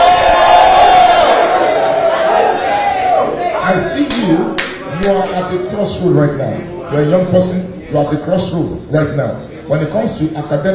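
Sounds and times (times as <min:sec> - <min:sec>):
audience shouting in victory: 0:00.0 - 0:04.2
speech: 0:03.7 - 0:10.7.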